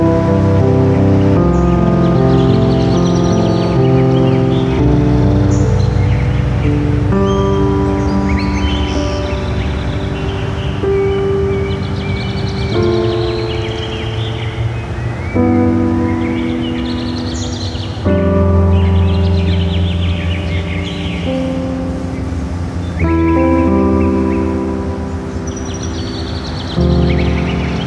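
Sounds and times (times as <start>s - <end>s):
birds singing: 0.0s - 27.8s.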